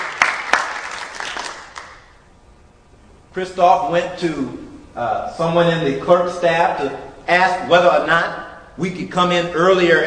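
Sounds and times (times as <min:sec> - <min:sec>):
audience applause: 0:00.0 - 0:02.0
speech: 0:03.4 - 0:10.0.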